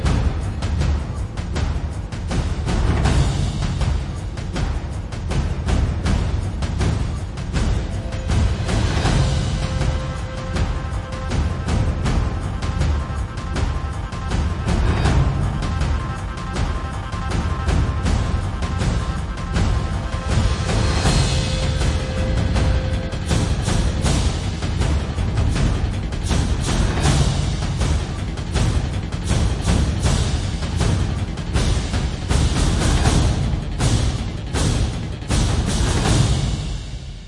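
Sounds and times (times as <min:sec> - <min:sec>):
percussion: 0:00.0 - 0:37.2.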